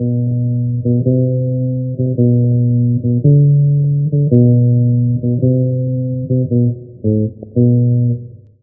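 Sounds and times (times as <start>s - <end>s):
bass: 0.0s - 8.6s.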